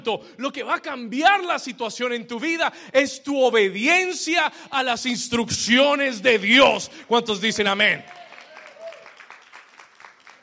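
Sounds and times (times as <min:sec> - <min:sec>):
speech: 0:00.0 - 0:08.2
audience applause: 0:07.8 - 0:10.4.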